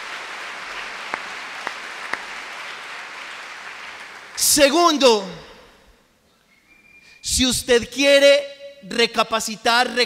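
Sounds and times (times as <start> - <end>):
audience applauding loudly: 0.0 - 4.6
speech: 4.4 - 5.5, 7.4 - 10.0.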